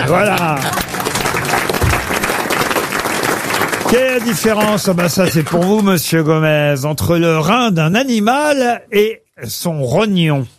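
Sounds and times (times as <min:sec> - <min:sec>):
studio audience applauding: 0:00.0 - 0:06.0
speech: 0:00.1 - 0:00.8, 0:03.9 - 0:10.5.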